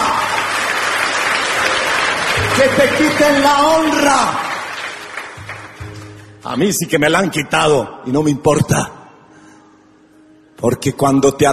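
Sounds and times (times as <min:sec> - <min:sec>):
audience applause: 0:00.0 - 0:06.0
speech: 0:02.6 - 0:04.4, 0:06.5 - 0:09.0, 0:10.6 - 0:11.5.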